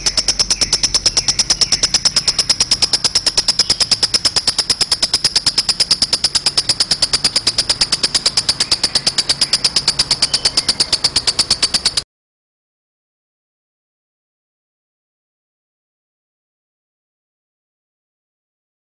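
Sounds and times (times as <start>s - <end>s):
snow lovebird calling: 0.0s - 12.0s.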